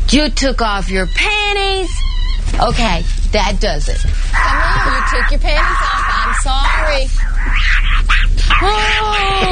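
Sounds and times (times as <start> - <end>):
speech: 0.1 - 7.7, 8.6 - 9.5
monkey vocalizing: 3.9 - 9.5.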